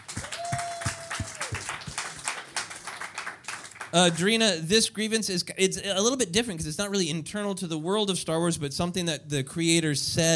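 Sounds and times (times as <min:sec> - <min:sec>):
applause: 0:00.0 - 0:04.3
speech: 0:03.9 - 0:10.3.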